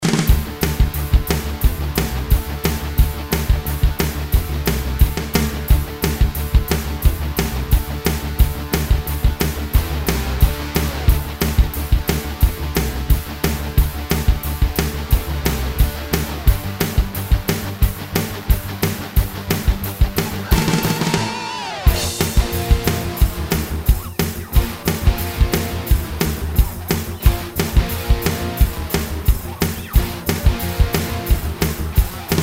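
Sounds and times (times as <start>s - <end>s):
pop rock music: 0.0s - 32.4s.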